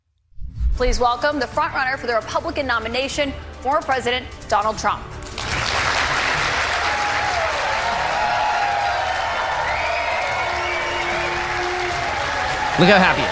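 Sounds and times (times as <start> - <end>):
speech: 0.8 - 5.2, 12.8 - 13.3
standing ovation applause for Donald Trump at a Republican primary town hall: 5.3 - 13.3
faint cheering: 6.8 - 13.3.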